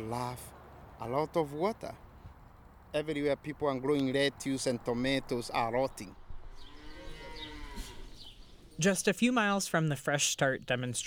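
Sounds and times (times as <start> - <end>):
speech: 0.0 - 2.0, 2.9 - 6.2, 8.8 - 11.0
dairy cow mooing: 6.5 - 8.3.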